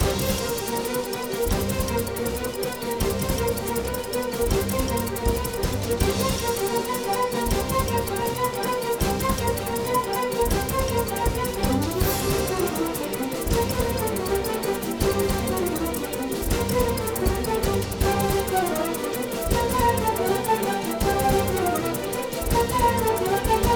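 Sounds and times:
theme music loop: 0:00.0 - 0:23.7.

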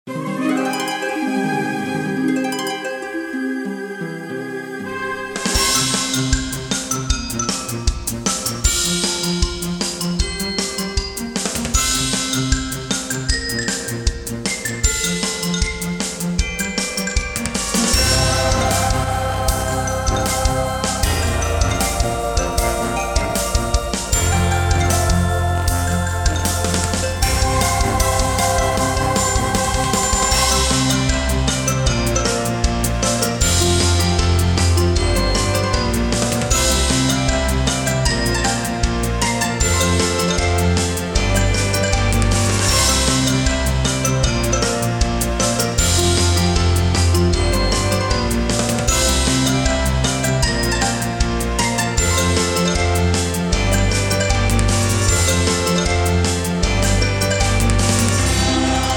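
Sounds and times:
instrumental theme music: 0:00.0 - 0:58.9.

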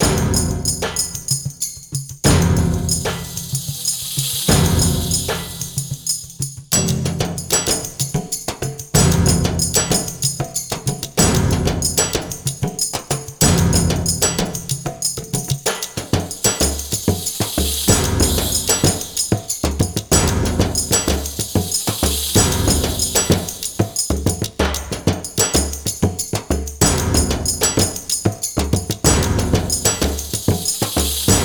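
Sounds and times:
percussion fight music: 0:00.0 - 0:31.4.

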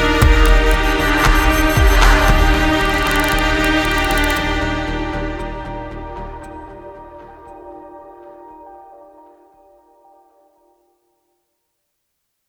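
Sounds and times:
music ending: 0:00.2 - 0:05.3.

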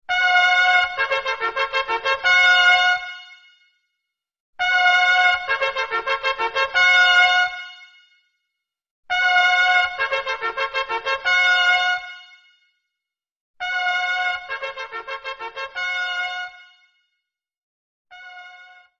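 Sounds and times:
trumpet: 0:00.0 - 0:03.8, 0:04.6 - 0:08.2, 0:09.1 - 0:12.7, 0:13.6 - 0:17.0, 0:18.1 - 0:18.9.

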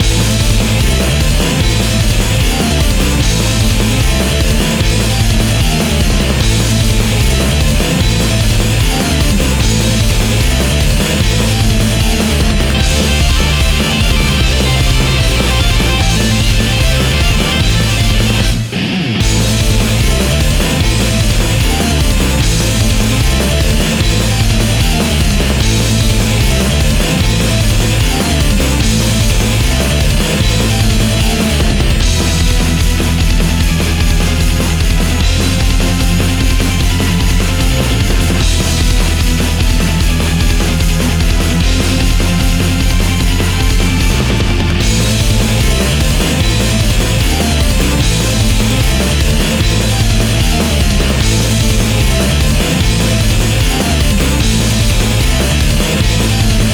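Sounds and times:
high speed heavy battle music: 0:00.0 - 0:56.7.

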